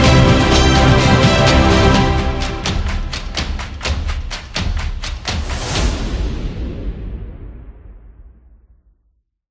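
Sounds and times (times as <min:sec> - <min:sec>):
epic sports action music: 0:00.0 - 0:07.6.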